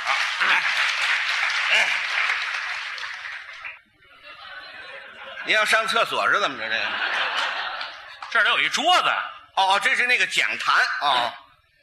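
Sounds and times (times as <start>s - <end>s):
audience applause: 0.0s - 3.8s
laughter: 0.0s - 8.4s
speech: 0.4s - 0.8s, 1.7s - 2.2s, 5.5s - 7.2s, 8.3s - 11.4s.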